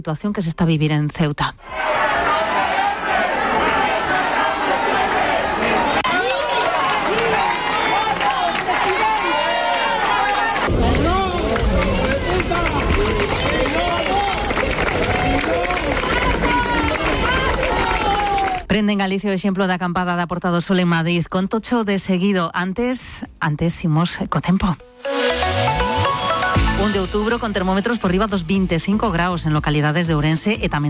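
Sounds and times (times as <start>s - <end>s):
speech: 0.0s - 2.1s, 18.8s - 25.5s, 26.8s - 30.8s
crowd applauding and cheering: 2.0s - 18.7s.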